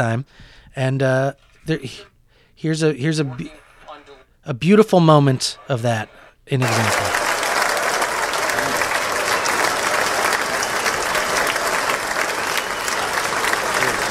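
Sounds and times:
speech: 0:00.0 - 0:03.6, 0:04.4 - 0:07.2
laughter: 0:00.8 - 0:14.0
large audience applause: 0:03.0 - 0:04.2, 0:05.1 - 0:14.0.

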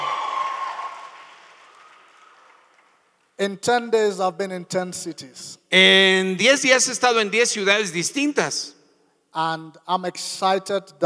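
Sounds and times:
crowd shouting hallelujah and applauding: 0:00.0 - 0:03.1
speech: 0:03.4 - 0:11.0.

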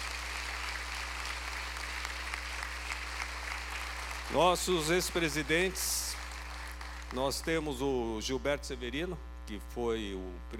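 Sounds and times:
church audience applauding: 0:00.0 - 0:07.5
speech: 0:04.3 - 0:06.2, 0:07.1 - 0:10.5.

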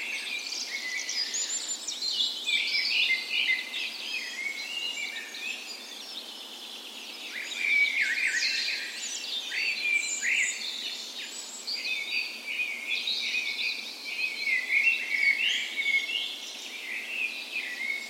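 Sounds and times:
dawn chorus of birds: 0:00.0 - 0:18.0.

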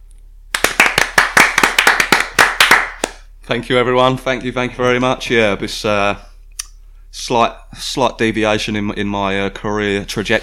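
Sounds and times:
round of applause: 0:00.5 - 0:03.2
speech: 0:03.5 - 0:06.3, 0:07.2 - 0:10.4.

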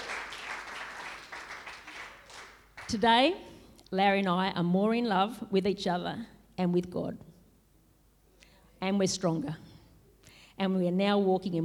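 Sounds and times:
audience cheering: 0:00.0 - 0:02.6
speech: 0:02.9 - 0:07.3, 0:08.8 - 0:09.7, 0:10.6 - 0:11.6.

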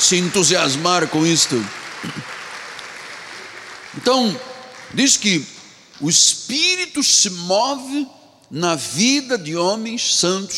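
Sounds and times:
audience applause: 0:00.0 - 0:05.4
speech: 0:00.1 - 0:02.3, 0:04.0 - 0:10.5.

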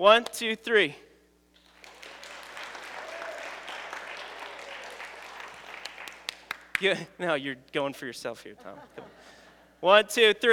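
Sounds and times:
speech: 0:00.0 - 0:01.1, 0:06.8 - 0:10.5
crowd clapping and cheering: 0:01.6 - 0:07.0
laughter: 0:08.6 - 0:09.6.

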